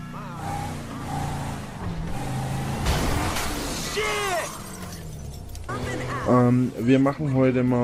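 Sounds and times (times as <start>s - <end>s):
vehicle engine rumble: 0.0s - 7.8s
window glass shattering as a vehicle is driven through the windows: 2.8s - 5.6s
speech: 6.3s - 7.8s.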